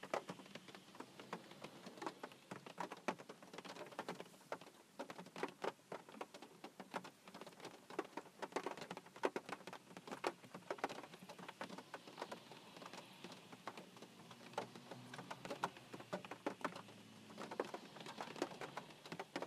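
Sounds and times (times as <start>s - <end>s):
raindrops on a roof: 0.0s - 19.4s.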